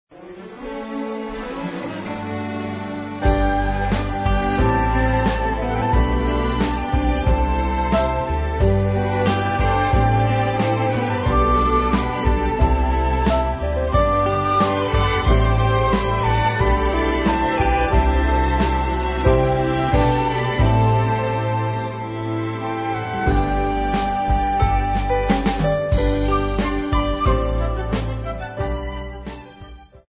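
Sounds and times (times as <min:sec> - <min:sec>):
romantic music: 0:00.1 - 0:30.0.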